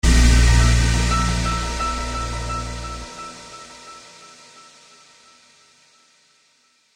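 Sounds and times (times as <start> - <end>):
crash: 0.0 - 4.1.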